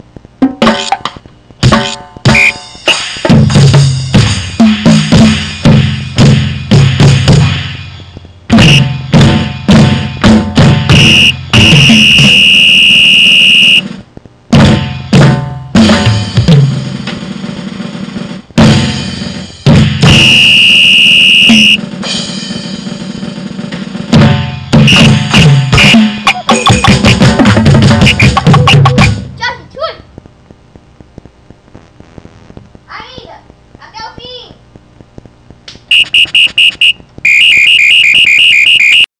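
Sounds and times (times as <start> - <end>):
drum kit: 0.0 - 29.5, 34.7 - 39.1
whistle: 2.3 - 2.7, 10.9 - 13.9, 20.1 - 21.8, 35.9 - 39.1.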